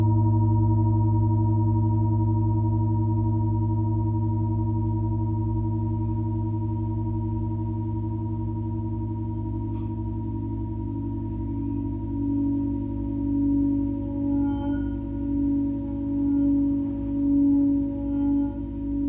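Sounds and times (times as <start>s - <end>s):
Tibetan singing bowl humming: 0.0s - 19.0s.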